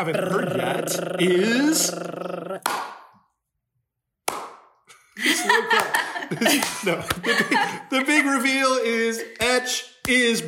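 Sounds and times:
laughter: 0.0 - 1.6, 5.2 - 8.0
speech: 0.0 - 2.9, 5.2 - 10.4
audience clapping: 2.6 - 3.1, 5.4 - 7.6.

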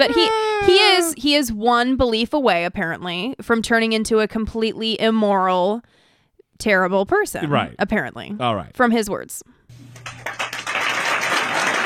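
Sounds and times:
speech: 0.0 - 6.0, 6.6 - 10.4
audience applause: 9.8 - 11.8.

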